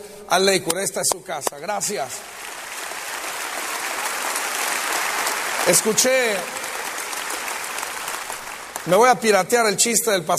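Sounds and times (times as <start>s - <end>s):
speech: 0.3s - 2.5s, 5.7s - 6.6s, 8.8s - 10.3s
applause from a congregation at Lakewood: 1.4s - 9.7s.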